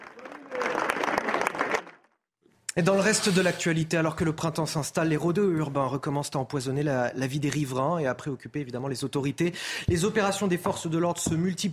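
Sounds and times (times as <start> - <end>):
residents applauding at a memorial march: 0.0 - 2.2
speech: 2.8 - 11.7.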